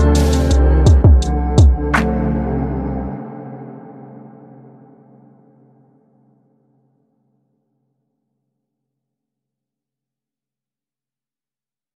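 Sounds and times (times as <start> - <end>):
sad Arabian remix music: 0.0 - 6.2.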